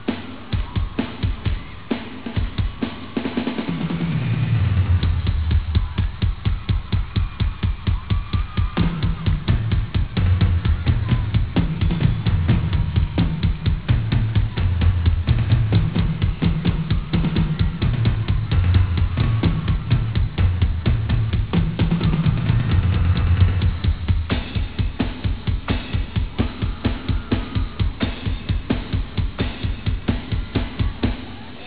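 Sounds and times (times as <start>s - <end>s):
drums: 0.0s - 31.6s.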